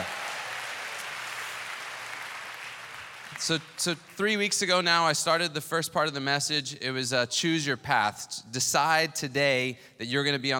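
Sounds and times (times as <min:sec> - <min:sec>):
audience hand clap: 0:00.0 - 0:04.2
speech: 0:03.4 - 0:10.5.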